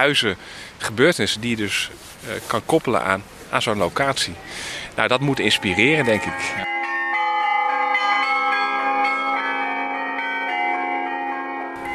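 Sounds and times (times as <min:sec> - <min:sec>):
speech: 0:00.0 - 0:06.7
carillon bells ringing: 0:05.2 - 0:11.9.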